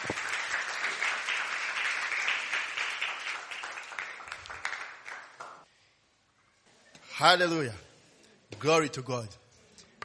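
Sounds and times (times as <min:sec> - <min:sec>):
audience hand clapping: 0:00.0 - 0:05.7
speech: 0:07.2 - 0:07.9, 0:08.6 - 0:09.4.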